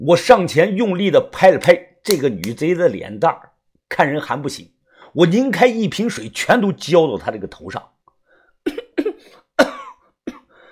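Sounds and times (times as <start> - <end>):
speech: 0.0 - 8.0
cough: 8.7 - 10.6.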